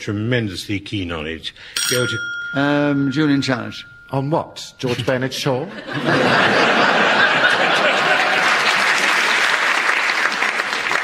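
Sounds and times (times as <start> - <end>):
speech: 0.0 - 8.1
laughter: 4.8 - 9.4
audience applause: 6.7 - 11.0.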